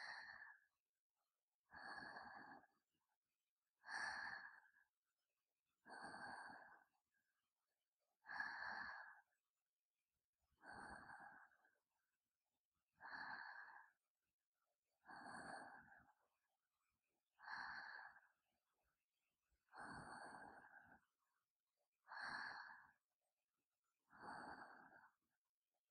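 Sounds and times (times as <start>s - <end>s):
sleep breathing ASMR: 0.0s - 0.6s, 1.7s - 2.7s, 3.8s - 4.8s, 5.9s - 6.9s, 8.2s - 9.4s, 10.6s - 11.6s, 13.0s - 14.0s, 15.0s - 16.2s, 17.4s - 18.3s, 19.7s - 21.0s, 22.1s - 23.0s, 24.1s - 25.2s.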